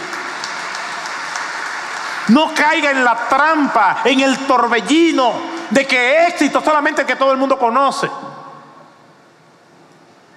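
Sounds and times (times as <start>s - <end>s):
audience applause: 0.0s - 4.8s
speech: 2.3s - 8.3s.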